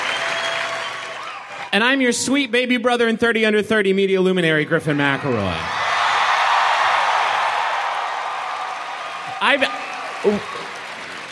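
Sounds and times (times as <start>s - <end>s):
audience applause: 0.0s - 1.7s, 5.1s - 11.2s
speech: 1.7s - 5.8s, 9.4s - 10.6s.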